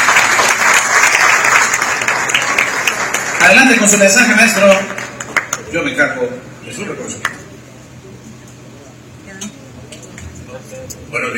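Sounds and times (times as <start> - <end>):
audience applause: 0.0 - 5.7
speech: 3.5 - 5.0, 5.7 - 7.4, 10.8 - 11.3.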